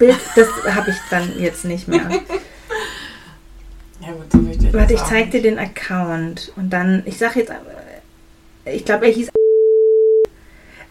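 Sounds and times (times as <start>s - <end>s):
speech: 0.0s - 2.4s, 4.0s - 7.8s, 8.7s - 9.4s
laughter: 0.0s - 3.1s
censor bleep tone: 9.4s - 10.3s.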